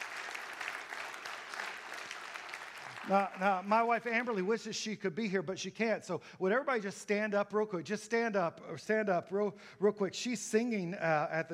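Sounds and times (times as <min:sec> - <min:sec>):
audience applause: 0:00.0 - 0:04.4
speech: 0:03.1 - 0:11.5.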